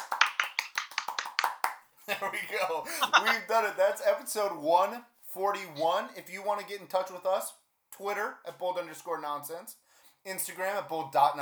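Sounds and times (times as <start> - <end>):
soft golf clap: 0.0 - 1.8
laughter: 2.1 - 3.7
speech: 2.1 - 11.4.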